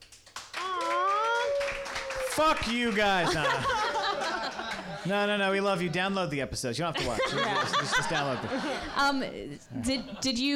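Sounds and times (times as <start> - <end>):
scattered audience clapping: 0.0 - 5.1
crowd whooping: 0.6 - 5.0
laughter: 1.9 - 6.4, 7.0 - 10.5
speech: 2.4 - 4.0, 5.0 - 10.5.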